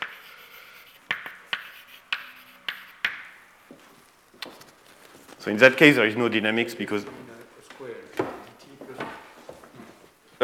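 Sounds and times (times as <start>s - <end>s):
writing on a board during a physics lecture: 0.0s - 4.6s
speech: 5.4s - 7.3s.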